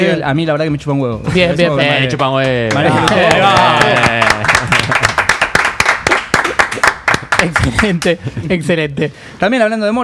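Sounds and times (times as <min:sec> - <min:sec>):
speech: 0:00.0 - 0:04.6, 0:07.4 - 0:10.0
studio applause: 0:02.6 - 0:08.1
laughter: 0:02.7 - 0:05.2.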